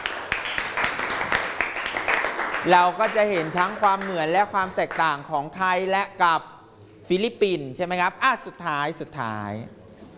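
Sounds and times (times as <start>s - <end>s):
classmates clapping for a fellow student: 0.0s - 5.2s
speech: 2.6s - 6.5s, 7.1s - 9.8s.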